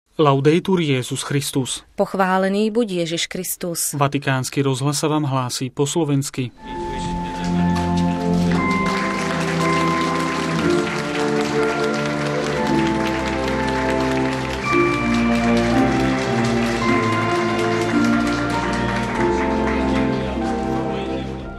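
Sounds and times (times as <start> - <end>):
speech: 0.2 - 7.7
applause in entrance hall for arriving guest: 7.0 - 21.4.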